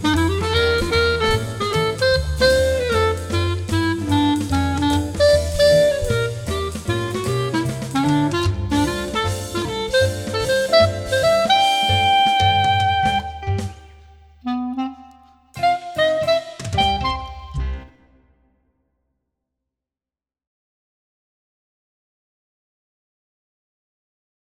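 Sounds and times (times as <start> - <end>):
clarinet: 0.0 - 18.0.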